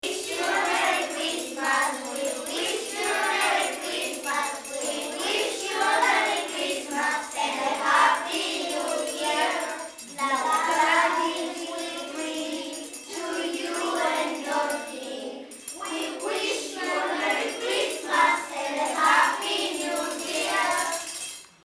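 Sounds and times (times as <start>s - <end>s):
Christmas song: 0.0s - 21.6s.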